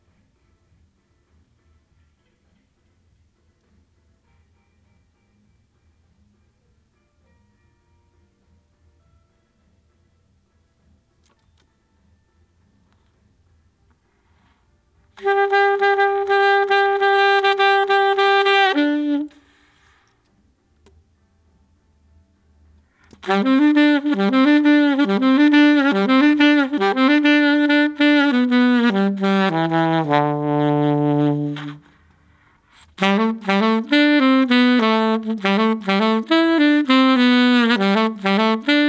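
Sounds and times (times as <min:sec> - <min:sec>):
saxophone: 0:15.2 - 0:20.0, 0:23.1 - 0:38.8.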